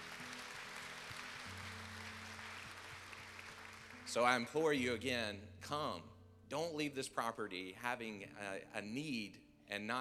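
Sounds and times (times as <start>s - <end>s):
audience applause: 0.0s - 4.1s
speech: 4.1s - 9.9s.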